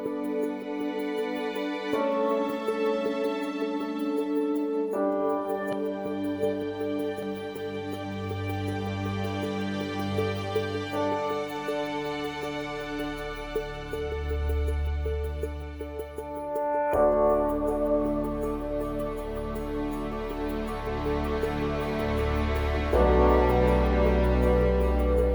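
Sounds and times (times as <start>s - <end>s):
orchestral post race music at 80bpm: 0.1s - 25.3s.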